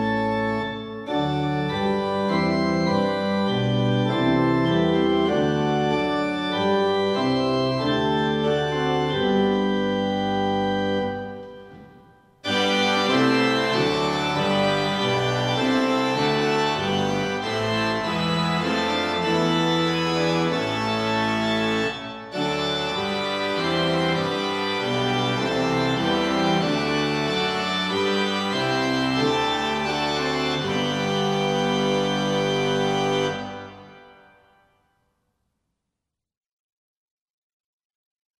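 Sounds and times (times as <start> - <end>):
hymn: 0.0 - 34.4.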